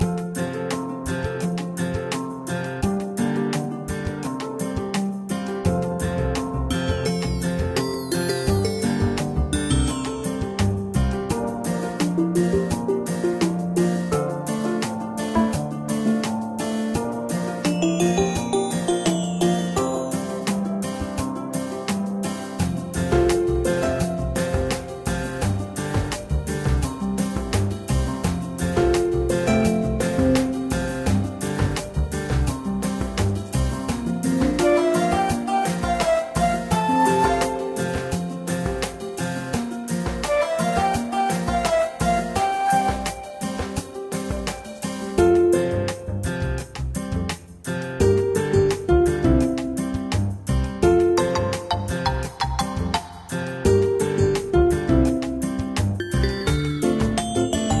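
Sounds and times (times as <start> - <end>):
music: 0.0 - 57.7.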